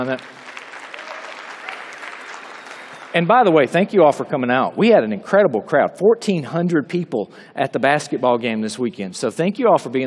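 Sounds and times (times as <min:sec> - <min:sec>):
speech: 0:00.0 - 0:00.5, 0:03.1 - 0:10.0
audience applause: 0:00.0 - 0:03.2.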